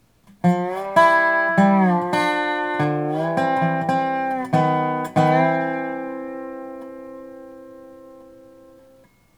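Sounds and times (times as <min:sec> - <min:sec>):
Hawaiian style lick: 0:00.4 - 0:08.9.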